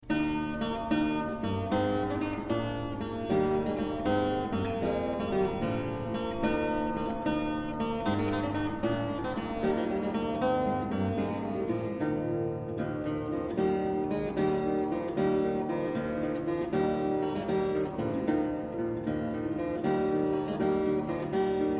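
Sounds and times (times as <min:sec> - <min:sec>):
bandora: 0:00.0 - 0:21.7.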